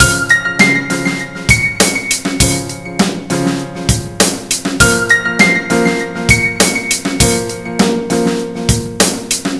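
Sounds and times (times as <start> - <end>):
fatty loop: 0.0 - 8.2.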